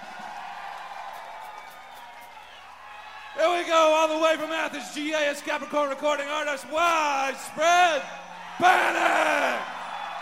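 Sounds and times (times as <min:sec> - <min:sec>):
audience applause: 0:00.0 - 0:03.6, 0:09.3 - 0:10.2
audience cheering: 0:00.0 - 0:10.2
speech: 0:03.4 - 0:09.7.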